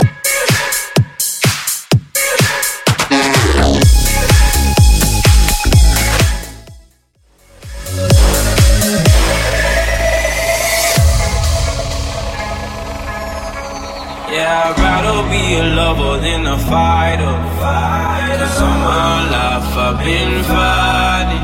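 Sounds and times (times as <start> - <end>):
mash-up music: 0.0 - 21.3.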